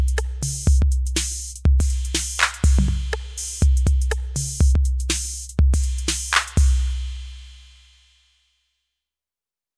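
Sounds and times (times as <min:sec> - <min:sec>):
TR8 drum machine pattern: 0:00.0 - 0:06.9.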